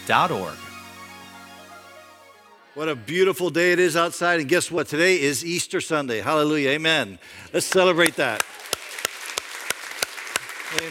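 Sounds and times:
speech: 0:00.1 - 0:00.7, 0:02.8 - 0:08.7
audience clapping: 0:07.7 - 0:10.8.

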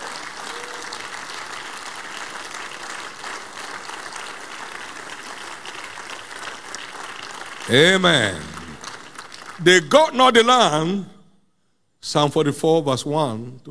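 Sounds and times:
audience clapping in praise: 0:00.0 - 0:10.8
speech: 0:07.7 - 0:08.5, 0:09.6 - 0:11.1, 0:12.0 - 0:13.6.

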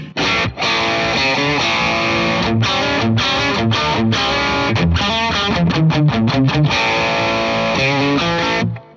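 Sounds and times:
distorted electric guitar through an effects pedal: 0:00.0 - 0:08.9.

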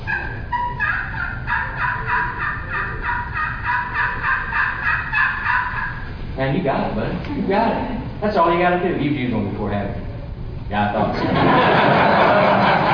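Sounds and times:
slate turkey call scratching out raspy high yelps: 0:00.0 - 0:06.2
low rumbling background: 0:00.0 - 0:12.9
speech: 0:06.4 - 0:10.1, 0:10.7 - 0:12.1
laughter: 0:11.1 - 0:12.9.

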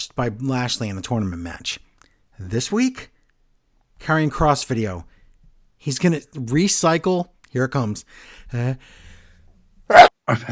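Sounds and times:
speech: 0:00.1 - 0:03.2, 0:04.0 - 0:05.2, 0:05.8 - 0:09.0, 0:09.9 - 0:10.4
sneeze: 0:09.9 - 0:10.1.

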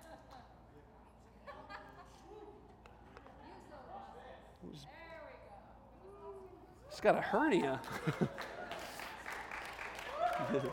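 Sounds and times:
speech: 0:04.7 - 0:05.0, 0:07.0 - 0:08.5, 0:10.5 - 0:10.7
audience applause: 0:07.8 - 0:10.7.

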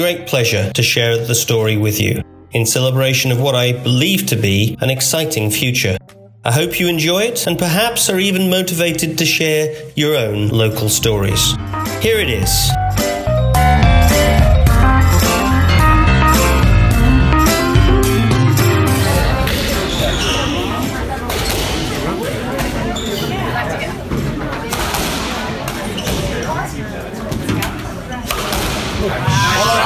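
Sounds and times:
speech: 0:00.0 - 0:13.1
brief music: 0:10.9 - 0:19.8
crowd murmur at a squash tournament: 0:13.3 - 0:29.8
squash ball striking the walls and racket: 0:24.6 - 0:26.5, 0:27.3 - 0:29.5.

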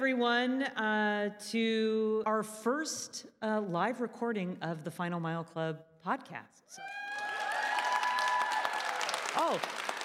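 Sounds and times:
speech: 0:00.0 - 0:07.1, 0:09.3 - 0:09.8
audience applauding: 0:06.9 - 0:10.0.

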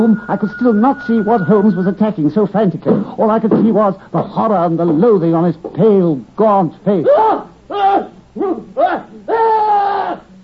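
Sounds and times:
speech: 0:00.0 - 0:10.2
horrible scream: 0:07.1 - 0:10.3.

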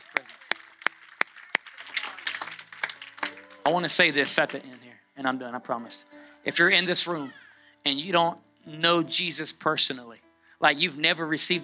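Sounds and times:
church congregation clapping as an offering of gratitude to God: 0:00.0 - 0:04.9
speech: 0:03.7 - 0:11.6.

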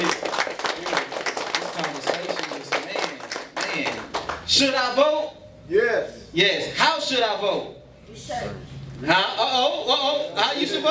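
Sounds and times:
crowd clapping: 0:00.0 - 0:04.6
speech: 0:04.5 - 0:05.1, 0:05.7 - 0:10.8.

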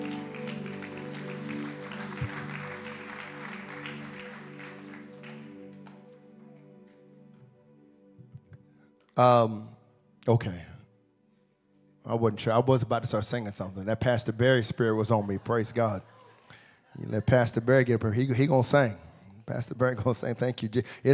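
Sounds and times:
audience clapping hands: 0:00.0 - 0:07.4
sustained organ chords: 0:00.0 - 0:11.2
speech: 0:09.2 - 0:09.7, 0:10.3 - 0:10.7, 0:12.1 - 0:16.1, 0:16.9 - 0:21.1.

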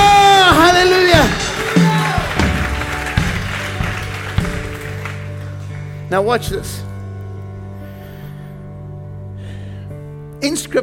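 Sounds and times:
audience shouting: 0:00.0 - 0:04.0
audience clapping: 0:00.0 - 0:06.1
speech: 0:06.1 - 0:06.9, 0:10.5 - 0:10.8.

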